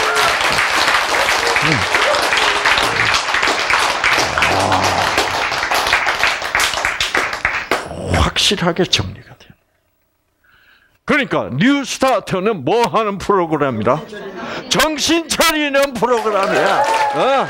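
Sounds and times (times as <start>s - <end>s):
audience applause: 0.0s - 8.0s, 16.1s - 17.4s
speech: 1.7s - 1.9s, 8.5s - 9.5s, 11.1s - 17.4s.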